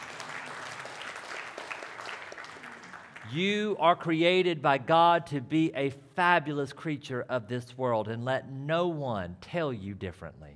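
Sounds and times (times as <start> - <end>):
crowd clapping: 0.0 - 3.4
speech: 3.3 - 10.5.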